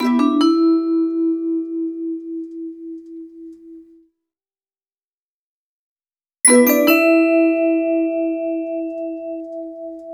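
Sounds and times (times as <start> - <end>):
bells: 0.0 - 2.5, 6.5 - 10.1
vibraphone: 0.0 - 2.8, 6.5 - 10.1.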